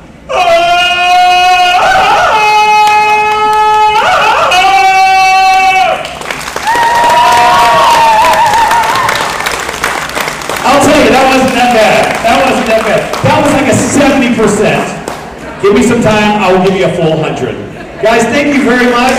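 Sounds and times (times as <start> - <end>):
whoops and cheering voices: 0.3 - 9.5
audience applause: 6.0 - 13.9
speech: 15.7 - 19.1.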